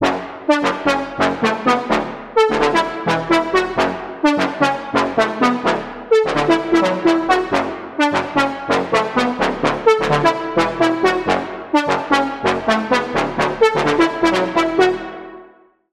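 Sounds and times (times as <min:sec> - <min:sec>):
Sylenth1 synth lead: 0:00.0 - 0:15.4.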